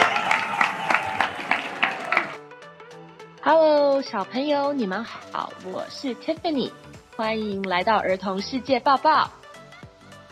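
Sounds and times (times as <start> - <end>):
audience clapping in time: 0.0 - 2.4
speech: 3.5 - 9.4.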